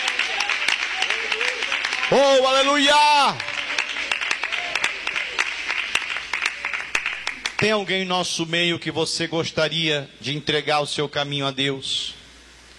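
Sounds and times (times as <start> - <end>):
audience applauding: 0.0 - 7.8
speech: 2.1 - 3.5, 7.6 - 12.2.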